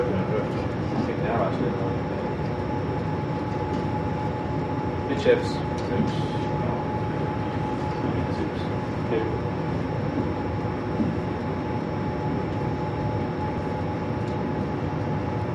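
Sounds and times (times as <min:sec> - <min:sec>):
cruise ship bridge interior ambience: 0:00.0 - 0:15.5.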